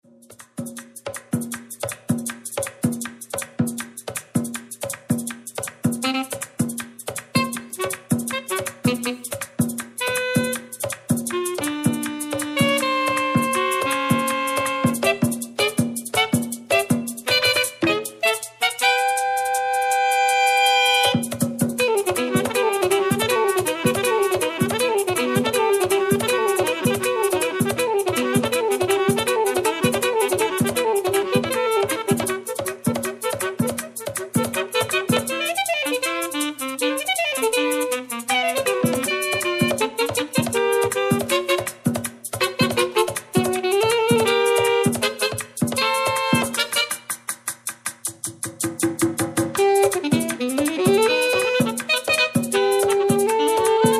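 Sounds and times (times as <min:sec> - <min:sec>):
merengue music: 0:00.0 - 0:53.9.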